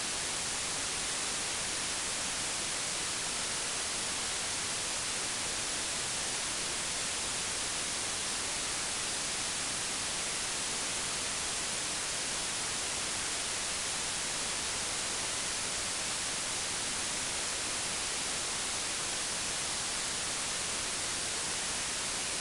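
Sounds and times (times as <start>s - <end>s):
10 kHz octave-band white noise: 0.0s - 22.3s.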